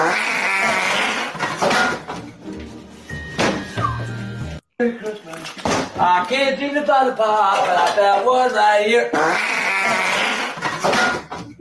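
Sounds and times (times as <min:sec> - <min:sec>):
fart: 0:00.0 - 0:01.4, 0:09.1 - 0:10.7
speech: 0:04.8 - 0:11.2.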